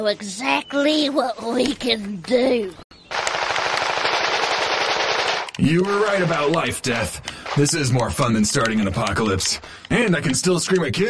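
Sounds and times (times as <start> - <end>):
speech: 0.0 - 2.8, 5.6 - 11.0
first-person shooter video game automatic gunfire: 3.1 - 6.5.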